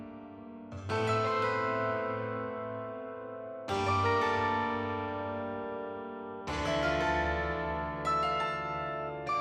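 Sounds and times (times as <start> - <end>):
pianos: 0.9 - 9.3
synth pads: 6.5 - 9.3.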